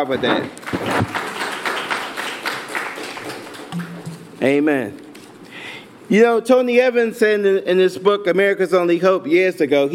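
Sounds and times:
speech: 0.0 - 1.2, 4.4 - 5.0, 6.1 - 9.9
crowd applause: 0.9 - 4.0.

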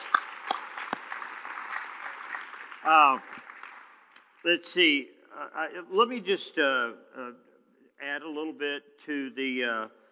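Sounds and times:
audience clapping: 0.0 - 5.0
speech: 2.8 - 3.4, 4.4 - 10.0.

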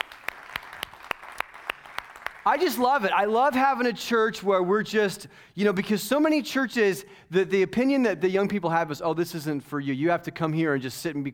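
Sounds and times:
scattered applause: 0.0 - 3.0
audience clapping in a steady rhythm: 0.0 - 3.6
speech: 2.4 - 11.3.

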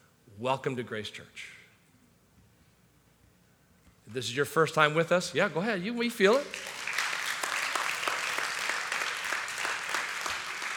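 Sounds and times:
speech: 0.4 - 1.6, 4.1 - 6.8
crowd clapping: 6.2 - 10.7.

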